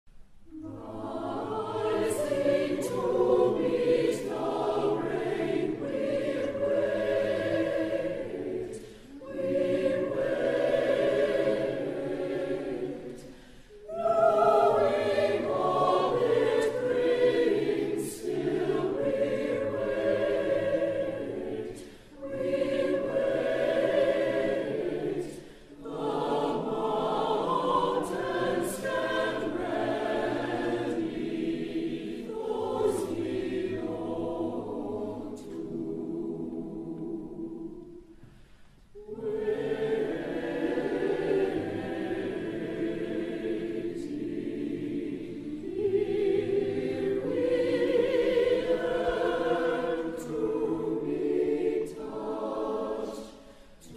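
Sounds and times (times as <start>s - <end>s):
senior choir singing: 0.4s - 53.9s.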